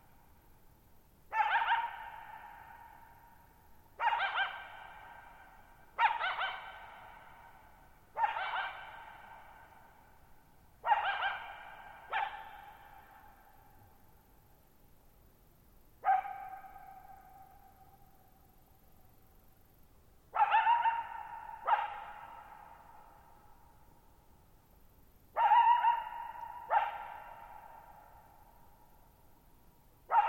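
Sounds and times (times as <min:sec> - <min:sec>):
coyote barking: 0:01.3 - 0:03.3, 0:04.0 - 0:10.0, 0:10.8 - 0:13.6, 0:16.0 - 0:17.8, 0:20.3 - 0:23.4, 0:25.3 - 0:28.4, 0:30.1 - 0:30.2.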